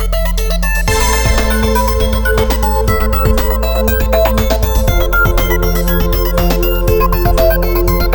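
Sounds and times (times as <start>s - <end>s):
EDM news opening music: 0.2s - 8.1s.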